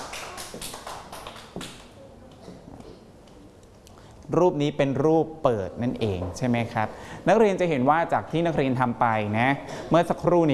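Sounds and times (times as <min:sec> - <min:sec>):
hand clapping: 0:00.0 - 0:02.0
speech: 0:04.3 - 0:10.5.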